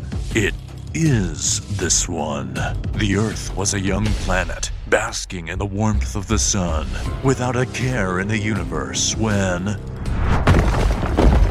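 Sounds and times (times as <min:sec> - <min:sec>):
speech: 0:00.4 - 0:09.9
rumbling booms of asteroid impacts: 0:03.8 - 0:07.3, 0:09.8 - 0:11.4.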